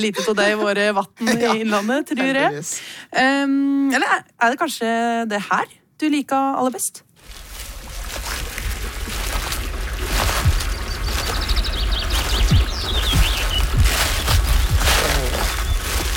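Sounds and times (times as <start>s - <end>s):
laughter: 0.0s - 2.6s
speech: 0.0s - 7.4s
walking through brush and heather: 7.2s - 16.1s
birdsong: 9.3s - 16.1s.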